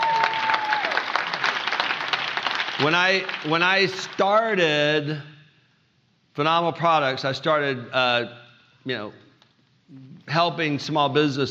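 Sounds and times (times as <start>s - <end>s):
audience applause: 0.0s - 4.2s
speech: 2.8s - 5.3s, 6.4s - 9.2s, 9.9s - 11.4s.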